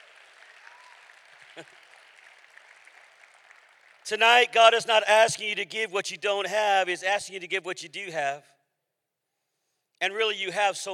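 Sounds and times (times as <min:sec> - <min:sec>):
people clapping hands: 0:00.0 - 0:04.7
speech: 0:01.6 - 0:01.8, 0:04.1 - 0:08.6, 0:10.0 - 0:10.9.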